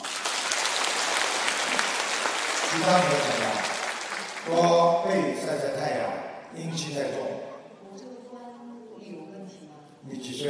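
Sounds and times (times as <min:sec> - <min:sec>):
audience applause of many hands clapping: 0:00.0 - 0:05.2
speech: 0:02.7 - 0:03.7, 0:04.4 - 0:08.1, 0:10.0 - 0:10.4.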